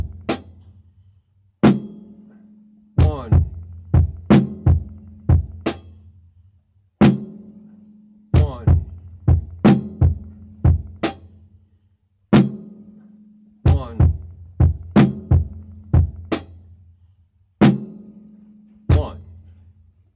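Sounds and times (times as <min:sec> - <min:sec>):
drum beat: 0:00.0 - 0:00.6, 0:01.6 - 0:02.1, 0:03.0 - 0:06.0, 0:07.0 - 0:07.4, 0:08.4 - 0:11.4, 0:12.4 - 0:12.7, 0:13.7 - 0:16.6, 0:18.9 - 0:19.3.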